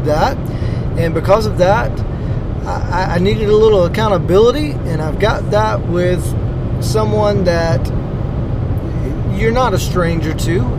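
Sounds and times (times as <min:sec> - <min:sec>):
speech: 0:00.0 - 0:08.0, 0:09.4 - 0:10.7
road and engine noise inside a moving car: 0:00.0 - 0:10.7.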